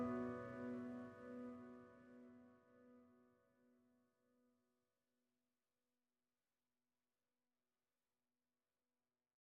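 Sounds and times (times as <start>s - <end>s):
solo piano: 0.0s - 2.1s.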